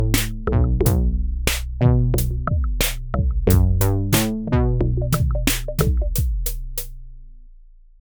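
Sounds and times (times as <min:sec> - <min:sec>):
dry rhythm section: 0:00.0 - 0:04.5, 0:05.1 - 0:06.9.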